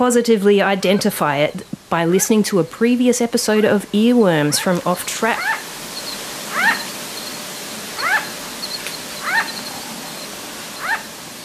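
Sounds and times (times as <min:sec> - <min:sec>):
speech: 0:00.0 - 0:05.6
low hiss: 0:00.0 - 0:11.4
sugar glider yapping at a house: 0:04.4 - 0:11.2.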